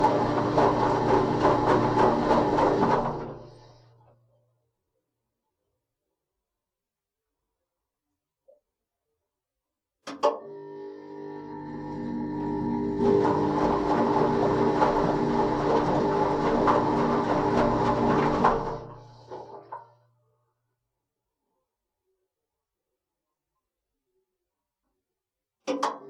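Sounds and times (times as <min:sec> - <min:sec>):
washing machine wash and spin cycle: 0:00.0 - 0:04.0, 0:10.4 - 0:20.1.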